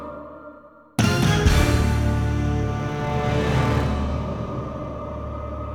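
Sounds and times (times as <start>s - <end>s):
fanfare: 1.0s - 5.6s.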